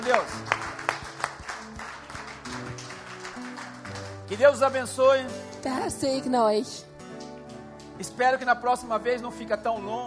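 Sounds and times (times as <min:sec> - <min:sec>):
audience applause: 0:00.0 - 0:04.4
speech: 0:00.1 - 0:00.6, 0:04.3 - 0:06.9, 0:08.0 - 0:10.0.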